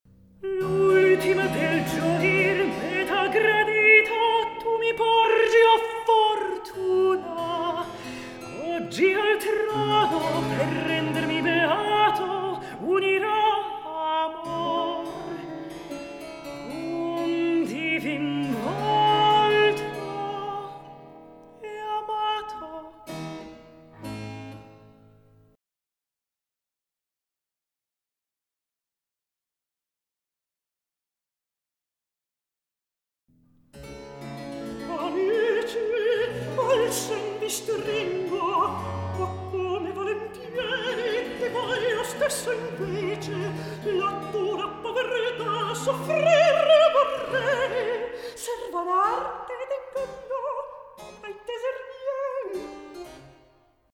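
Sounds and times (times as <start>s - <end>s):
recitative singing: 0.4s - 20.9s, 34.7s - 52.9s.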